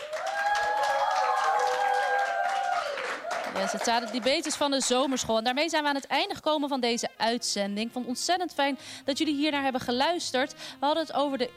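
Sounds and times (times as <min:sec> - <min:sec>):
audience applause: 0:00.0 - 0:05.3
speech: 0:03.6 - 0:11.5.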